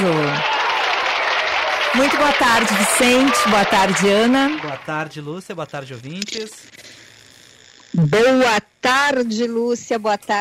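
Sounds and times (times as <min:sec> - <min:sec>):
applause: 0:00.0 - 0:05.3
speech: 0:02.0 - 0:07.0, 0:08.0 - 0:10.3.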